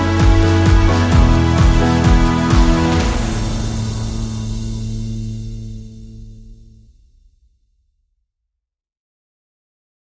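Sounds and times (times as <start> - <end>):
keys playing a short rhythm in G: 0.0 - 4.2
strings playing a short rhythm in G: 0.0 - 5.9.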